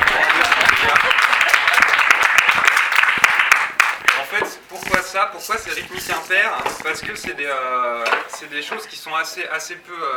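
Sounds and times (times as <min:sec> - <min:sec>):
audience applause: 0:00.0 - 0:04.2
speech: 0:05.2 - 0:10.1.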